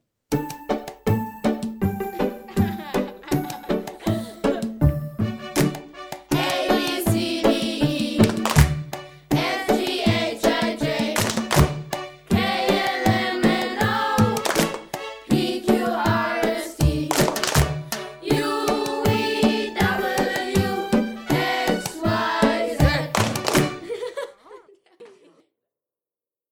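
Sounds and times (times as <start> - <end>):
children's song: 0.4 - 24.2
laughter: 2.1 - 4.8, 22.5 - 25.4.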